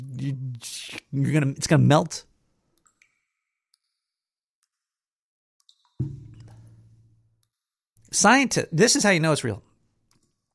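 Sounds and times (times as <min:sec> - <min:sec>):
speech: 0:00.2 - 0:02.3, 0:08.1 - 0:09.7
heavy water drip plop: 0:02.8 - 0:03.9, 0:05.6 - 0:07.1.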